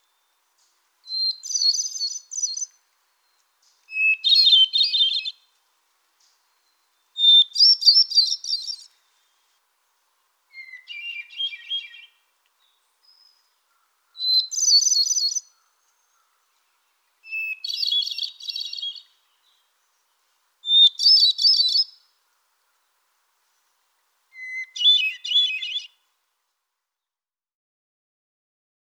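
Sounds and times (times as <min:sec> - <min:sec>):
solitaire song: 0:01.1 - 0:02.8, 0:03.9 - 0:05.4, 0:07.2 - 0:08.9, 0:10.5 - 0:12.2, 0:14.2 - 0:15.6, 0:17.2 - 0:19.1, 0:20.6 - 0:22.0, 0:24.3 - 0:26.0.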